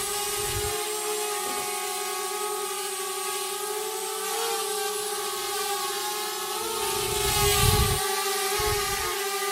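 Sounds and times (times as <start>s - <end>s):
drone taking off flying and landing: 0.0s - 9.4s.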